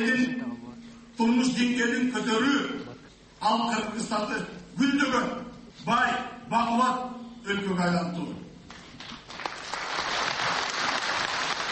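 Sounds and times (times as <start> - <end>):
speech: 0.0 - 8.4
crowd applause at an opposition rally in Kyrgyzstan: 8.9 - 11.7.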